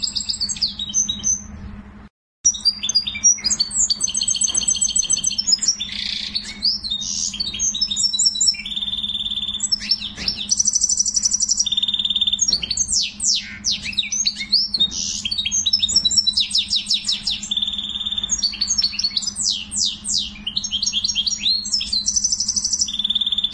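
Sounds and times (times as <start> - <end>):
canary singing: 0.0 - 1.9, 2.5 - 23.5.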